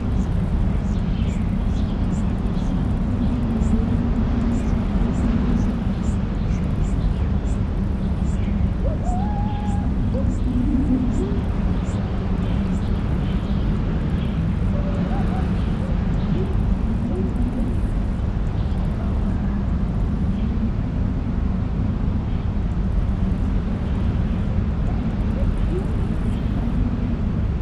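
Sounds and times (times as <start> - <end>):
wind in a forest: 0.0 - 27.5.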